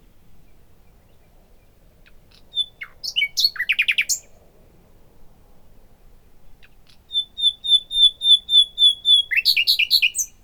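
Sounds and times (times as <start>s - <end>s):
common nightingale Luscinia megarhynchos singing: 0.5s - 4.3s, 6.6s - 10.4s.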